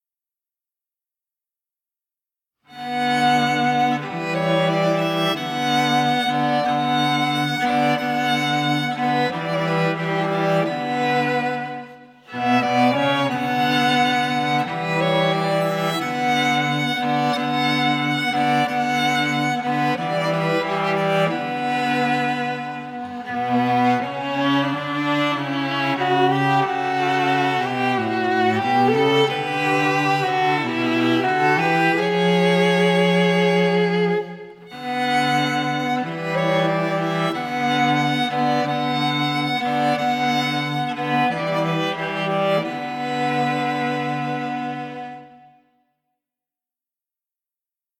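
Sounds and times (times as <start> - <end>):
trio playing: 2.8 - 45.4.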